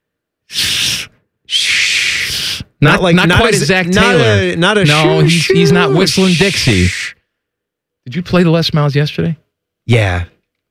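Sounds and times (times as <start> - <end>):
voice making hissing s sounds: 0.5 - 2.8, 4.9 - 7.2
speech: 2.8 - 7.2, 8.1 - 10.3.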